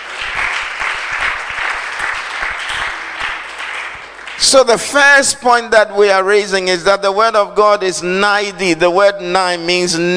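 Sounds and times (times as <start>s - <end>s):
crowd clapping: 0.0s - 5.0s
speech: 4.4s - 10.1s.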